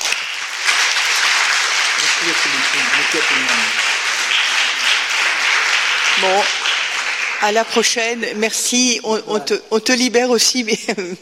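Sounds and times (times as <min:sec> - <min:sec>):
audience applause: 0:00.0 - 0:08.0
speech: 0:02.3 - 0:03.8, 0:06.2 - 0:06.6, 0:07.4 - 0:11.2.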